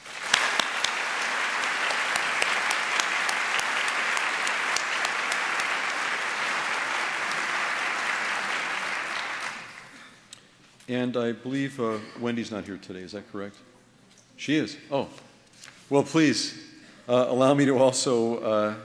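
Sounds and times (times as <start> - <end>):
audience applauding to welcome guests at a Cornell event: 0.0 - 10.0
sharp individual claps: 0.0 - 10.0
speech: 10.9 - 13.7, 14.4 - 15.3, 15.9 - 18.8.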